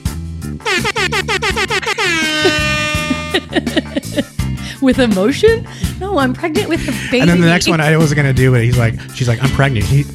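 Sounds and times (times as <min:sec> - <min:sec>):
speech: 0:00.6 - 0:01.4, 0:04.8 - 0:10.1
air horn blasts: 0:00.6 - 0:03.7
laughter: 0:02.2 - 0:04.4, 0:06.6 - 0:08.3.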